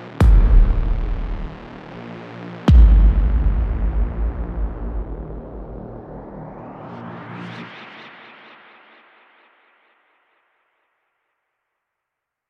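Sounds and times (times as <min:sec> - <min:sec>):
kick drums: 0:00.2 - 0:01.8, 0:02.7 - 0:06.0.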